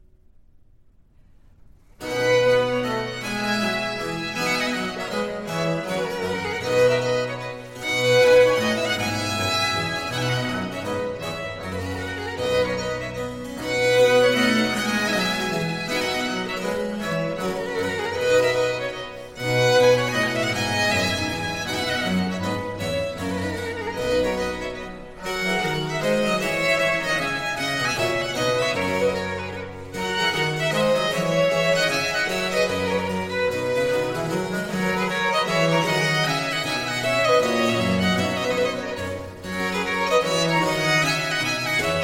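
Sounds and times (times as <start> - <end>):
minuet for 2 violins and continuo: 1.9 - 42.0.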